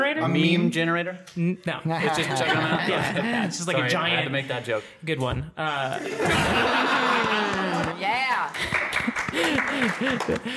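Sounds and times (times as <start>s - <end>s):
speech: 0.0s - 10.5s
laughter: 2.0s - 3.7s, 5.9s - 10.5s
hand claps: 7.1s - 10.5s.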